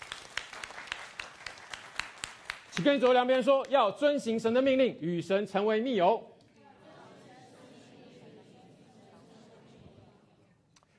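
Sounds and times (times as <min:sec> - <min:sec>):
audience clapping: 0:00.0 - 0:03.9
speech: 0:02.8 - 0:06.3.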